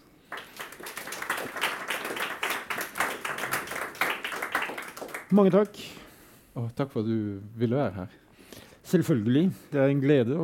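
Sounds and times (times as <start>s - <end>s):
audience applause: 0.3s - 5.6s
speech: 5.3s - 6.0s, 6.6s - 8.2s, 8.9s - 10.4s.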